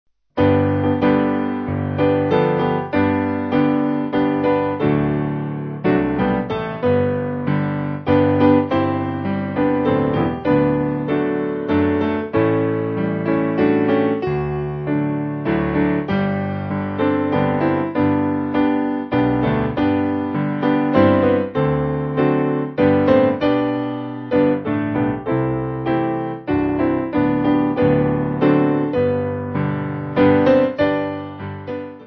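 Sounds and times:
piano: 0.3 - 32.0.

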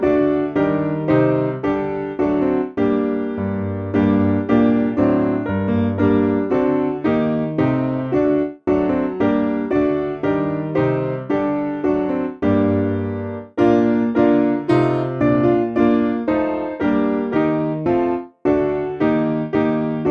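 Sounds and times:
simple piano piece: 0.0 - 20.1.

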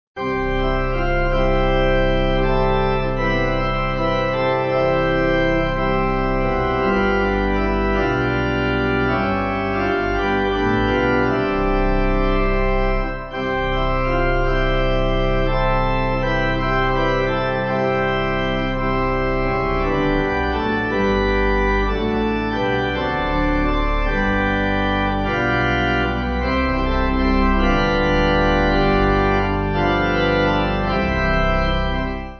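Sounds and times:
church pipe organ backing music: 0.2 - 32.3.

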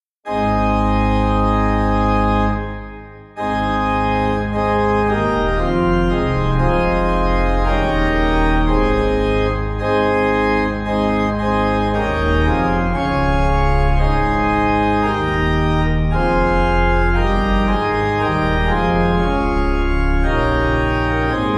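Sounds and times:
pipe organ playing a hymn: 0.3 - 21.5.

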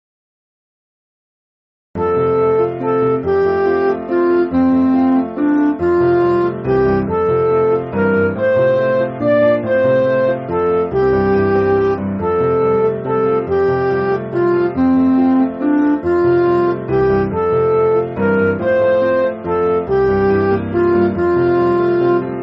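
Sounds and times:
MIDI church backing music: 2.0 - 22.4.

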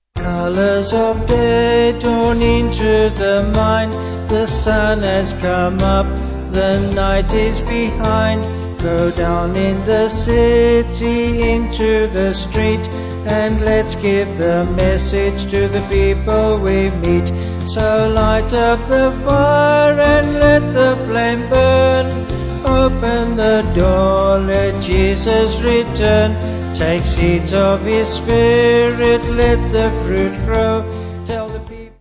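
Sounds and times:
vocal band singing: 0.2 - 31.7.

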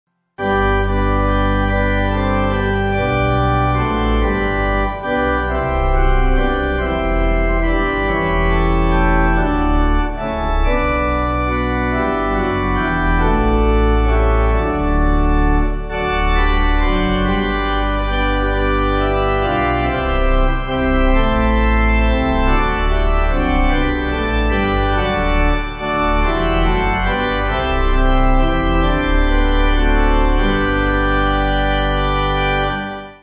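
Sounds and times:
pipe organ: 0.4 - 33.2.

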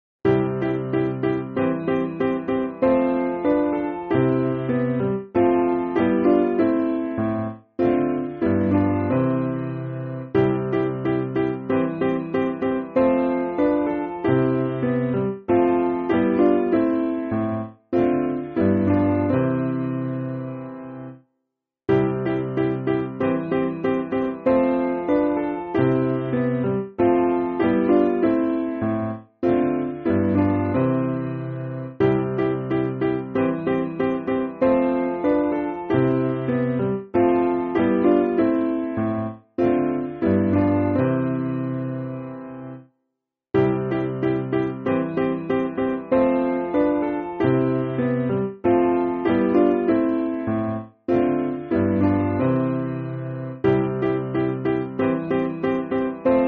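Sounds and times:
piano backing music for churches: 0.2 - 21.2, 21.9 - 42.9, 43.6 - 56.4.

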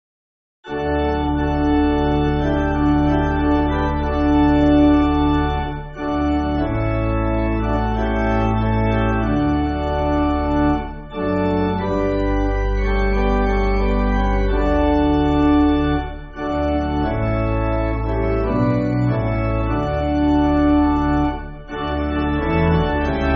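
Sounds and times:
pipe organ church music: 0.7 - 23.3.

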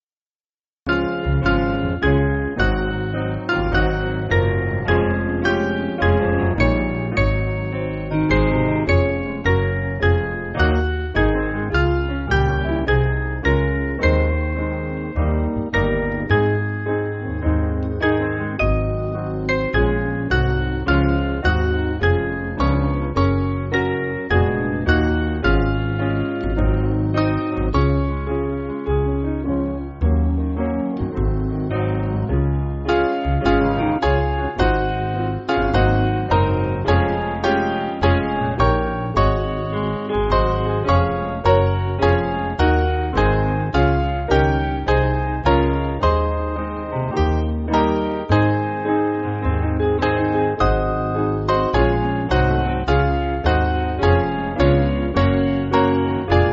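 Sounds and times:
church piano backing: 0.9 - 56.5.

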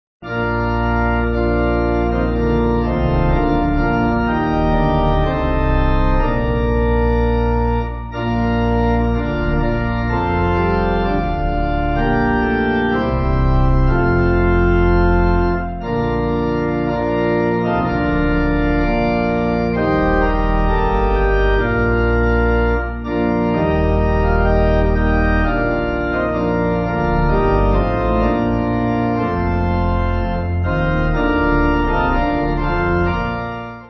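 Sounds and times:
church pipe organ backing music: 0.2 - 33.8.

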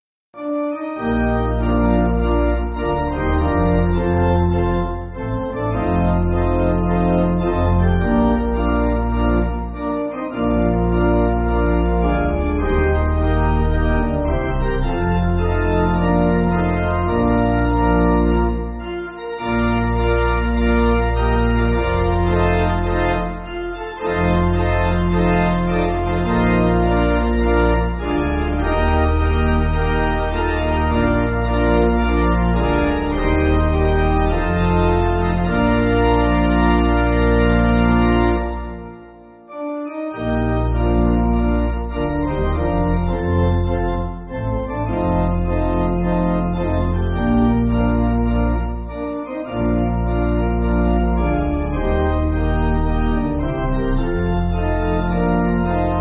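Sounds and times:
pipe organ backing music: 0.4 - 56.0.

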